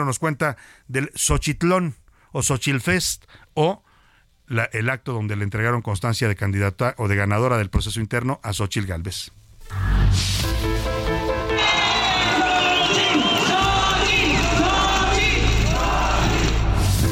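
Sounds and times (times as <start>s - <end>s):
speech: 0.0s - 3.9s, 4.5s - 10.4s
crowd cheering at political rally: 11.4s - 17.0s.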